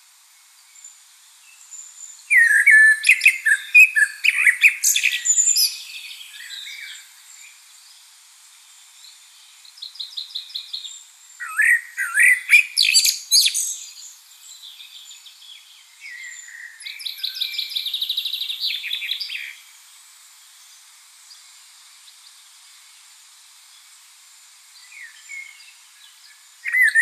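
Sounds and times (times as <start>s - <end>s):
common blackbird singing: 2.2s - 7.0s, 9.8s - 19.6s, 24.8s - 27.0s.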